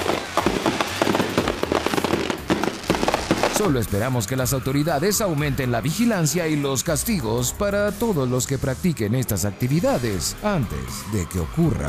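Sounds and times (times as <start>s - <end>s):
fireworks sizzling hiss: 0.0s - 3.7s
firecrackers and fireworks popping and crackling: 0.0s - 3.9s
speech: 3.6s - 11.8s.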